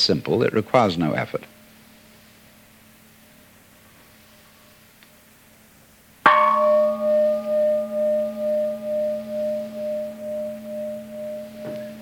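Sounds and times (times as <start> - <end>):
speech: 0.0 - 1.6
gong struck and resonating: 6.2 - 11.9.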